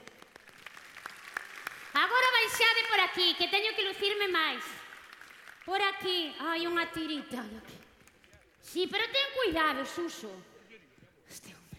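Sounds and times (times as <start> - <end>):
audience applause: 0.0 - 2.2, 4.8 - 5.7
speech: 2.5 - 4.8, 5.6 - 7.8, 8.6 - 10.5.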